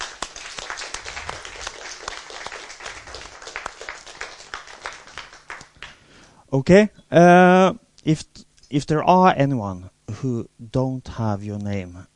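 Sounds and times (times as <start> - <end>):
audience applause: 0.0 - 6.0
speech: 6.5 - 12.1.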